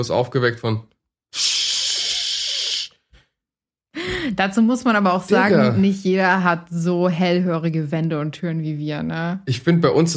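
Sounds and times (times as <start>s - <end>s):
speech: 0.0s - 1.5s, 4.3s - 10.1s
voice imitating a urine stream hitting a toilet bowl: 1.4s - 3.0s.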